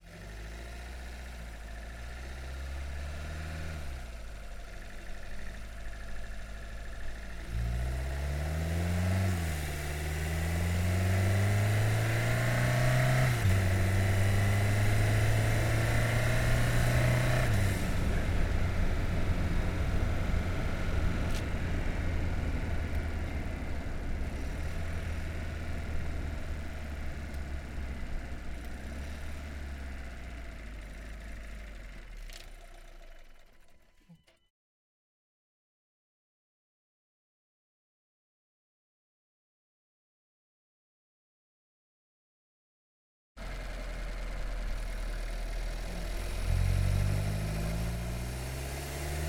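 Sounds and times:
VW Golf engine driving fast onboard: 0.1 - 32.2, 43.4 - 49.2.

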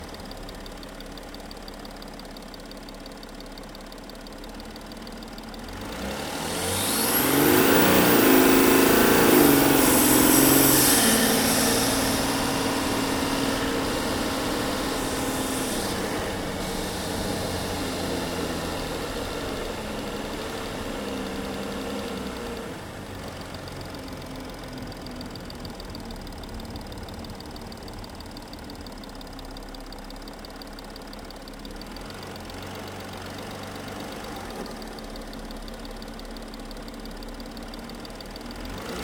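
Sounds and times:
Audi Q7 engine intake during driving with accelerations and decelerations: 5.8 - 29.5.

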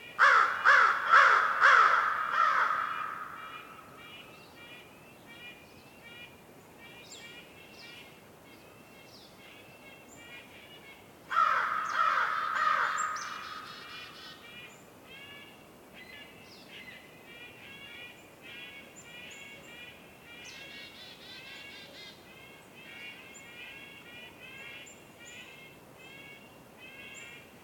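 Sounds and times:
crow cawing in a winter forest: 0.2 - 4.3, 11.3 - 14.4.

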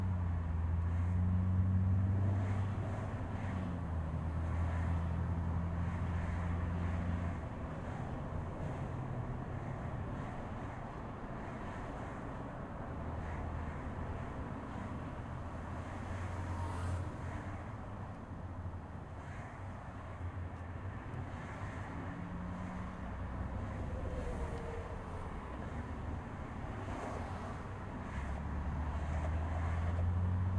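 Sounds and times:
car interior driving fast on busy freeway with windows open: 0.0 - 30.5.

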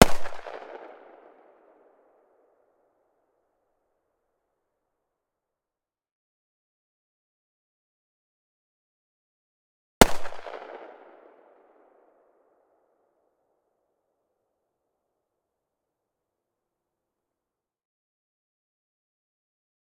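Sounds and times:
Desert Eagle pistol firing: 0.0 - 1.2, 10.0 - 11.2.

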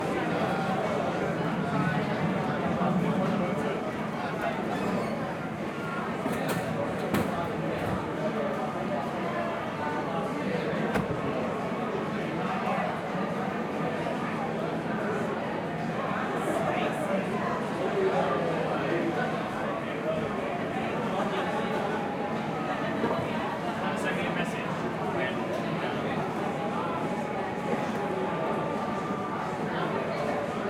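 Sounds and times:
busy large restaurant interior ambience: 0.0 - 30.6.

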